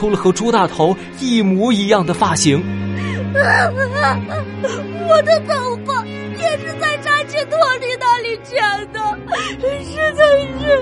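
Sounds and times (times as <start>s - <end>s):
speech: 0.0s - 10.8s
loud wailing sobbing cry: 3.4s - 5.5s.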